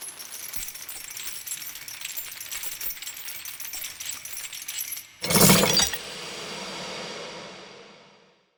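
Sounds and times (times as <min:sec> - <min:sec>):
chains rattling: 0:00.1 - 0:07.8.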